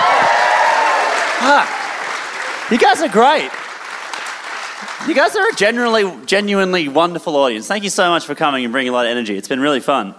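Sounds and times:
audience round of applause: 0.0 - 6.1
speech: 1.4 - 1.8, 2.7 - 3.6, 4.8 - 10.1.

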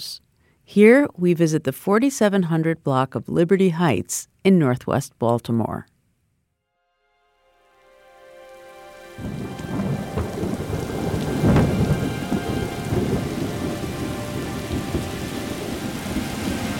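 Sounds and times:
speech: 0.0 - 5.9
heavy rain on a commercial street of storefronts in northwest Baltimore: 8.6 - 16.7
low rumble of thunder: 9.2 - 16.7.

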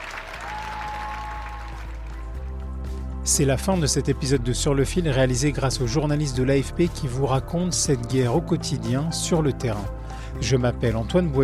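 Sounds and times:
thunderous applause from a large audience: 0.0 - 2.5
speech: 3.3 - 11.4.

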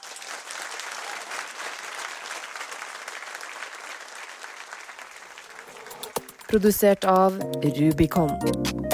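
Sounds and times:
audience applause: 0.0 - 6.6
speech: 6.5 - 8.8.

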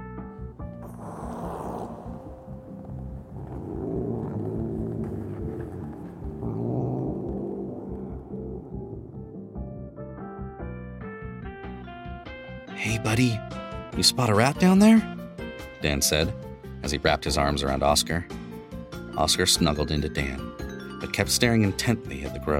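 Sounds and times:
cat's low throaty growl: 0.8 - 9.8
speech: 12.9 - 15.1, 15.8 - 18.4, 19.2 - 22.5.

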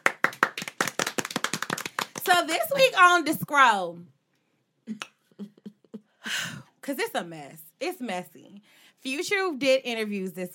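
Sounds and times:
hand claps: 0.0 - 2.5
speech: 2.3 - 4.2, 6.3 - 10.5.

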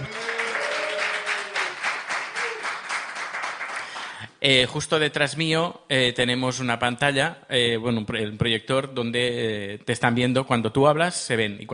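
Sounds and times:
audience applause: 0.0 - 4.2
speech: 4.4 - 11.7.

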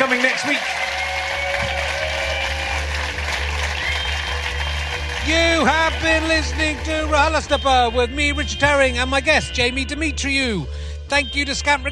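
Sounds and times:
audience applause: 0.0 - 7.5
speech: 0.2 - 0.8, 5.3 - 11.8.

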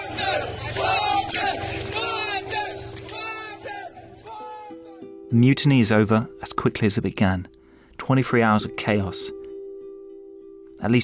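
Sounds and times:
crowd of residents cheering and shouting: 0.0 - 5.0
speech: 5.3 - 9.4, 10.8 - 11.0.

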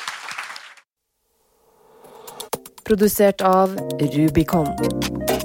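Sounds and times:
audience applause: 0.0 - 0.9
speech: 2.9 - 5.3.

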